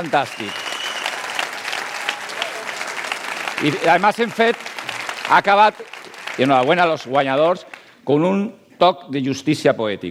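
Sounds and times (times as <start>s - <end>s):
speech: 0.0s - 0.7s, 3.6s - 4.7s, 5.3s - 10.0s
audience applause: 0.0s - 7.9s.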